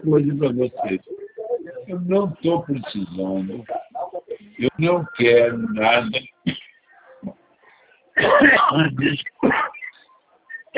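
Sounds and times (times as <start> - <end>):
speech: 0.0 - 1.2, 1.9 - 3.8, 4.6 - 6.3, 8.2 - 9.6
person choking and coughing during a phone call: 8.2 - 9.9.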